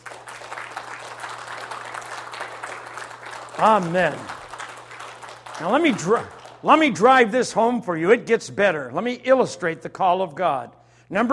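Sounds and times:
audience clapping: 0:00.0 - 0:07.3
speech: 0:03.6 - 0:04.4, 0:05.6 - 0:11.3.

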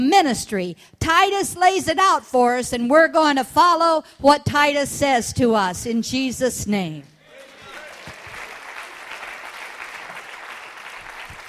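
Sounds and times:
speech: 0:00.0 - 0:07.1
audience clapping: 0:07.3 - 0:11.4.

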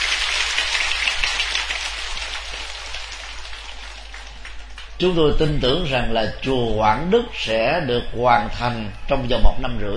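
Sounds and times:
audience applause: 0:00.0 - 0:05.2
speech: 0:05.0 - 0:09.9.

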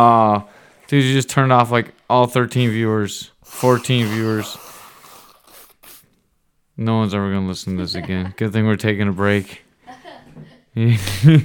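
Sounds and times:
speech: 0:00.0 - 0:04.7, 0:06.8 - 0:09.6, 0:10.4 - 0:11.4
loud honking nose blow into the microphone: 0:02.6 - 0:06.1.

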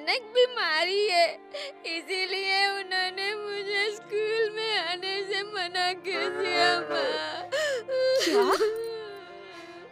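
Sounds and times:
speech: 0:00.1 - 0:08.8
young girl crying to her mother: 0:06.2 - 0:09.2.

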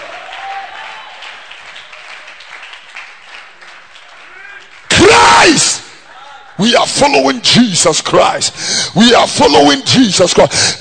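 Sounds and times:
audience clapping: 0:00.0 - 0:05.9
audience shouting: 0:04.3 - 0:06.5
speech: 0:05.4 - 0:05.8, 0:06.6 - 0:10.7.

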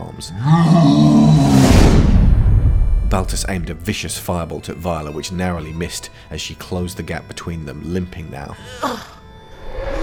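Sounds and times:
speech: 0:00.2 - 0:01.1, 0:03.2 - 0:09.1
Oberon roaring: 0:00.4 - 0:02.3.

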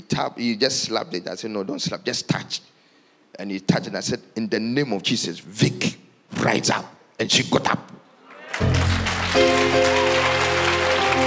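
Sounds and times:
speech: 0:00.1 - 0:08.0
audience clapping: 0:08.3 - 0:11.2.

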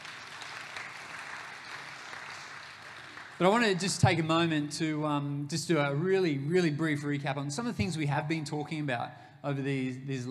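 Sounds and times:
audience applause: 0:00.0 - 0:03.9
speech: 0:03.4 - 0:10.2.

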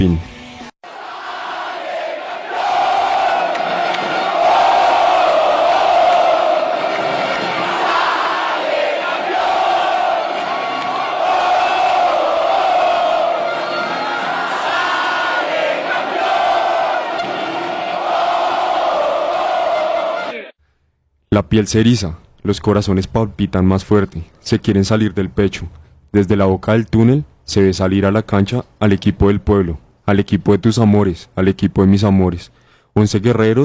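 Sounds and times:
speech: 0:00.0 - 0:00.3, 0:21.4 - 0:33.6
stadium crowd chanting: 0:00.8 - 0:20.6.

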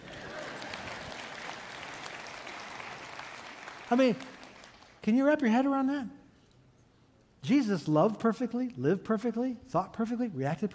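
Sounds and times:
audience applause: 0:00.0 - 0:05.0
speech: 0:03.9 - 0:04.3, 0:05.0 - 0:06.2, 0:07.4 - 0:10.7.

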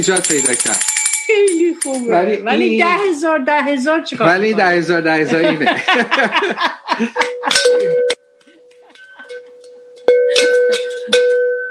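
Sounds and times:
bell rung in celebration: 0:00.0 - 0:03.0, 0:07.0 - 0:11.7
speech: 0:00.0 - 0:08.1
laughter: 0:04.2 - 0:08.1.

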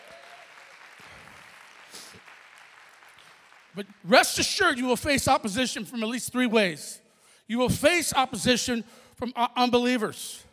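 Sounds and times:
audience clapping: 0:00.0 - 0:04.9
speech: 0:03.8 - 0:10.5.

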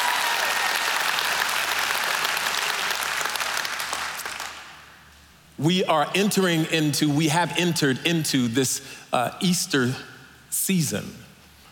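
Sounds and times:
church congregation applause during an Easter-season service: 0:00.0 - 0:04.9
speech: 0:05.6 - 0:11.2.

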